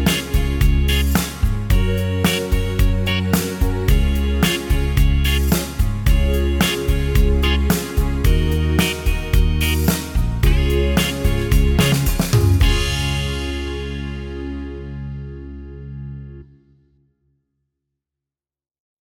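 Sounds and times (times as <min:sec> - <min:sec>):
boy band ballad in G: 0:00.0 - 0:15.0.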